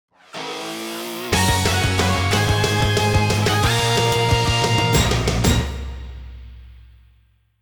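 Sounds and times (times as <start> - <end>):
victory theme music: 1.3 - 6.9.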